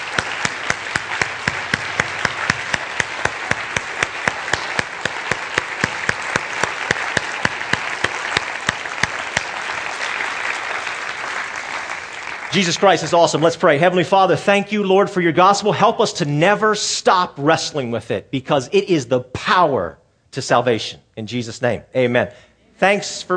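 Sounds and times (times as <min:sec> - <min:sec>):
large gathering clapping in praise: 0:00.0 - 0:13.8
speech: 0:12.6 - 0:23.3.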